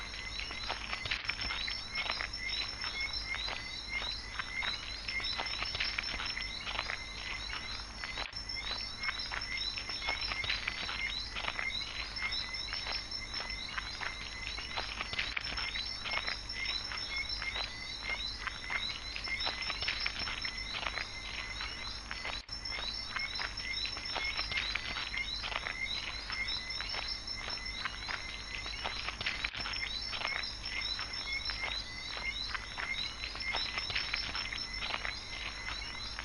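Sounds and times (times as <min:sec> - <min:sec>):
footsteps on gravel in nature: 0:00.0 - 0:36.2
quiet crickets: 0:00.0 - 0:36.2.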